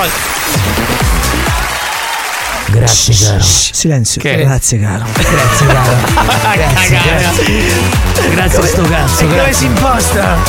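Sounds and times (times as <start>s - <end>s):
applause: 0.0s - 3.0s
speech: 2.7s - 10.4s
laughter: 5.1s - 10.4s.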